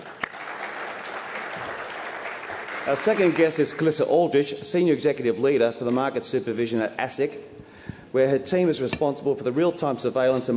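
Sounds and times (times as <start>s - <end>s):
audience applause welcoming a guest: 0.0s - 3.9s
speech: 2.9s - 10.5s.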